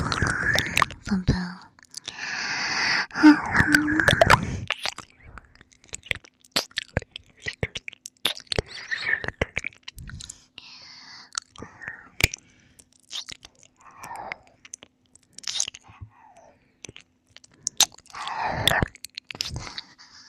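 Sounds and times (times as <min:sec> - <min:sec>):
close-miked ASMR ear-licking mouth sounds: 0:00.0 - 0:01.2, 0:03.2 - 0:10.5, 0:11.3 - 0:16.0, 0:16.8 - 0:20.0
soft breathy noises: 0:00.0 - 0:05.6, 0:10.0 - 0:12.9, 0:15.3 - 0:20.2
speech: 0:01.1 - 0:01.4.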